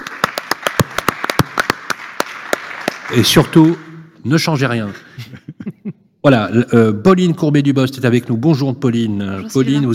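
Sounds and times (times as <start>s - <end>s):
scattered audience applause: 0.0s - 4.0s
speech: 3.1s - 5.4s, 6.2s - 9.9s
laughter: 5.0s - 6.0s.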